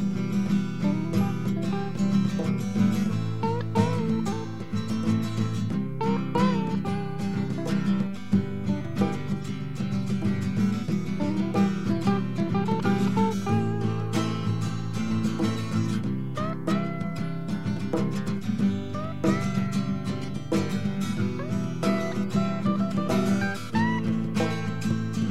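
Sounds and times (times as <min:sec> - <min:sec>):
acoustic music composition: 0:00.0 - 0:25.2.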